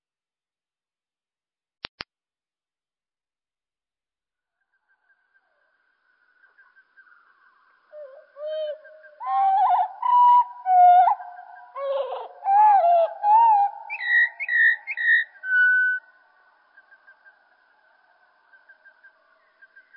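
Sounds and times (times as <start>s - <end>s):
slowed common blackbird song: 4.5s - 19.9s.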